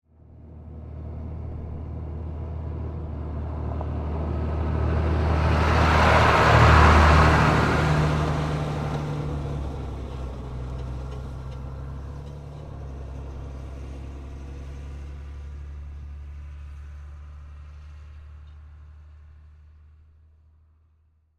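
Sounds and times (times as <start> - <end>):
telephone repair truck passing by: 0.2 - 20.0.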